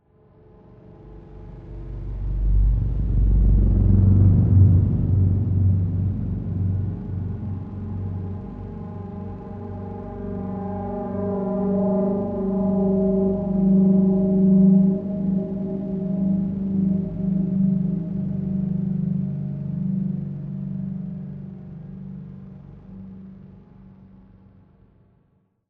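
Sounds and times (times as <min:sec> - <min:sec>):
subtle dark horror tension swells: 0:00.3 - 0:24.1.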